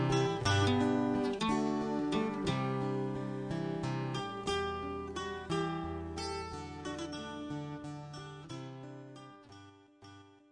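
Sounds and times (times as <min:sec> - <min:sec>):
guitar: 0:00.0 - 0:10.4
mandolin: 0:00.0 - 0:10.4.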